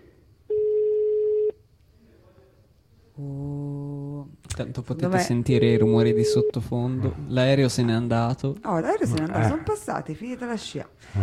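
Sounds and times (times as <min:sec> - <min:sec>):
outgoing phone call ring tone: 0:00.5 - 0:01.6, 0:05.6 - 0:06.6
speech: 0:04.6 - 0:11.2.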